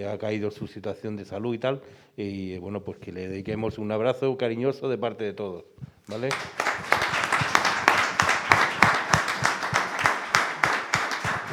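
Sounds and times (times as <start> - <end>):
speech: 0.0 - 6.9
audience applause: 6.1 - 11.5.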